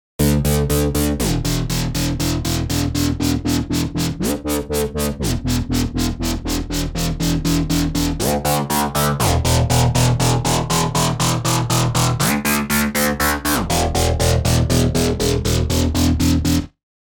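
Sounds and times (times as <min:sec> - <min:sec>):
rapid sync sequence: 0:01.2 - 0:16.6.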